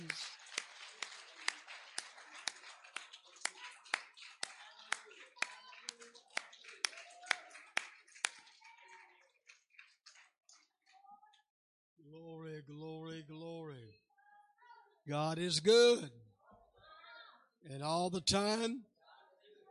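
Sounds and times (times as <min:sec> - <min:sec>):
audience hand clapping in praise: 0:00.0 - 0:11.0
speech: 0:15.1 - 0:16.2, 0:17.8 - 0:18.9.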